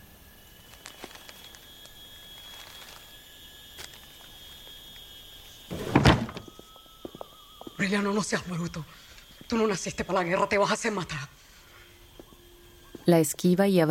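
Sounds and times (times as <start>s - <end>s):
thin steady hum: 0.0s - 13.8s
drawer sliding open: 5.7s - 6.4s
speech: 7.8s - 11.4s, 13.1s - 13.8s.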